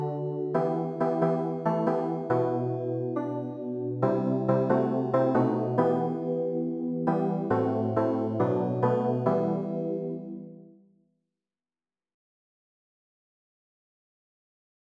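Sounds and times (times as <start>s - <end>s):
keyboard instruments playing: 0.0s - 10.6s.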